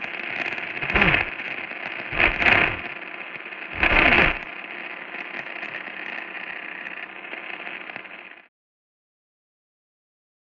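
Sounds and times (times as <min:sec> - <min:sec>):
radio static distortion: 0:00.4 - 0:01.4, 0:02.1 - 0:03.0, 0:03.7 - 0:04.5.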